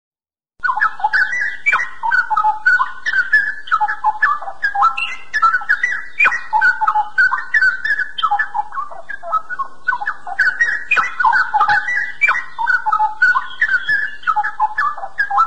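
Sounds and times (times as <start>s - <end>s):
Oriental magpie-robin singing: 0.6s - 15.4s.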